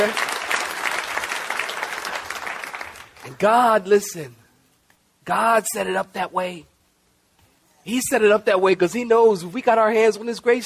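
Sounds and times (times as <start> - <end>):
speech: 0.0 - 0.3, 3.3 - 4.4, 5.3 - 6.7, 7.8 - 10.6
audience clapping: 0.0 - 3.5.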